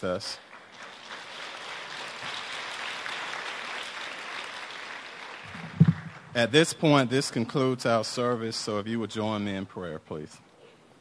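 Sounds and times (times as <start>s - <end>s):
speech: 0.0s - 0.5s, 6.3s - 10.5s
audience applause: 0.5s - 6.3s.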